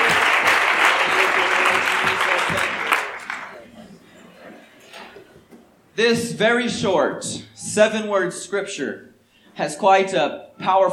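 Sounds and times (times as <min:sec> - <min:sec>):
room full of people clapping: 0:00.0 - 0:03.8
speech: 0:06.0 - 0:10.9.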